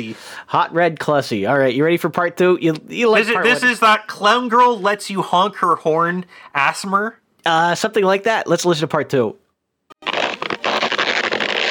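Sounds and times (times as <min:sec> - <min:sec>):
speech: 0:00.0 - 0:09.4
whoopee cushion fart noise: 0:10.0 - 0:11.7.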